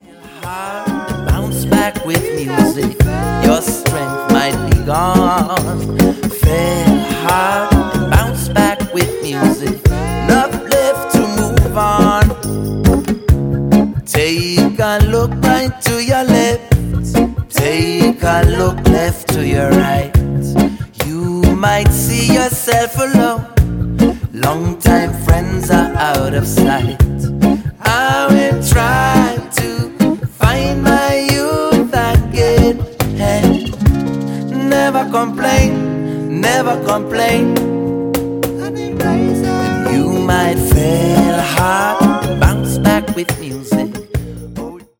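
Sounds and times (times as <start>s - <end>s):
acoustic song: 0.0s - 44.9s.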